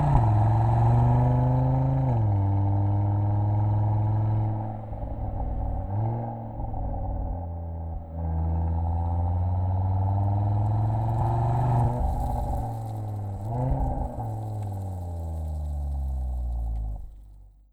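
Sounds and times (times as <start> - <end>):
Audi RS3 exhaust with replacement pipe and rear silencer: 0.0 - 17.7.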